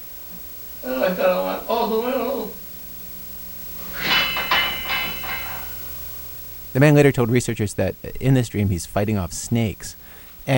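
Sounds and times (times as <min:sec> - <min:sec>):
quiet hiss: 0:00.0 - 0:10.5
speech: 0:00.8 - 0:02.6, 0:06.8 - 0:10.5
metal bed frame rattling and clanking: 0:03.9 - 0:05.8.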